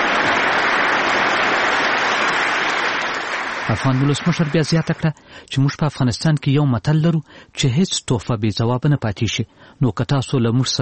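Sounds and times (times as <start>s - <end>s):
members of the US Congress applauding in Washington: 0.0s - 5.1s
speech: 3.7s - 10.8s.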